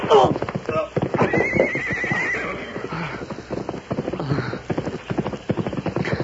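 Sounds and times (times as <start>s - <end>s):
horse neighing: 0.0s - 3.2s
hooves clip-clopping: 0.0s - 6.2s.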